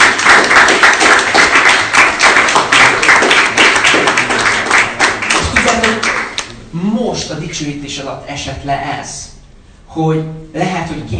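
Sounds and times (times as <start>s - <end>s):
audience applause: 0.0s - 6.5s
speech: 7.2s - 9.3s, 10.0s - 11.1s.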